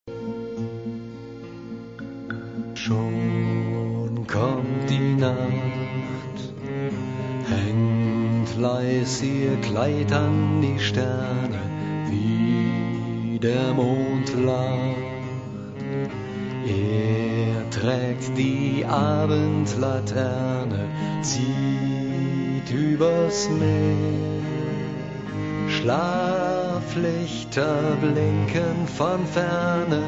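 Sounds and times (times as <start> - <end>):
Cretan lullaby: 0.1 - 30.0.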